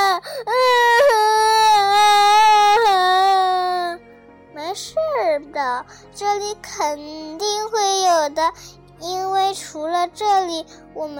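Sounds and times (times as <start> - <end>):
child crying loudly: 0.0 - 4.0
speech: 5.8 - 11.1.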